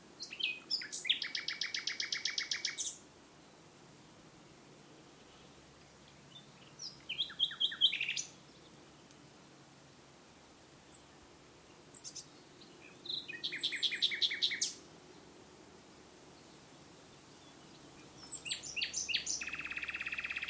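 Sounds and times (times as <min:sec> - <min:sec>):
nightingale singing at Woods Mill nature reserve: 0:00.2 - 0:03.6, 0:05.2 - 0:09.1, 0:10.5 - 0:15.2, 0:16.4 - 0:20.4.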